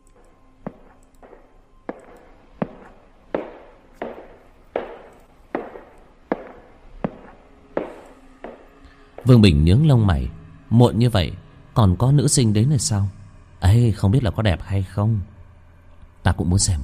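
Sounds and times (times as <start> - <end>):
slow heel footsteps echoing in a corridor: 0.0 - 9.4
speech: 9.2 - 15.4, 16.2 - 16.8.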